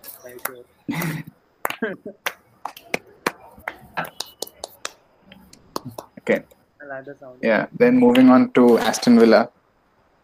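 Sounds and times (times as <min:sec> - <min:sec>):
speech: 0:00.2 - 0:02.4, 0:04.0 - 0:04.2, 0:05.8 - 0:09.6
clapping sound effect: 0:01.6 - 0:06.1.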